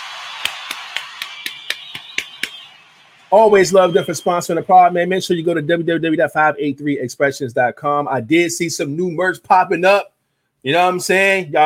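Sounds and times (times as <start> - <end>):
person clapping: 0.0 - 2.8
speech: 3.3 - 11.6.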